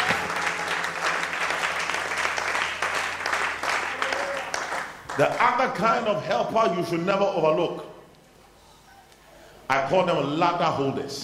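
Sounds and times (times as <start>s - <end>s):
audience clapping: 0.0s - 6.0s
speech: 5.2s - 7.9s, 9.7s - 11.2s.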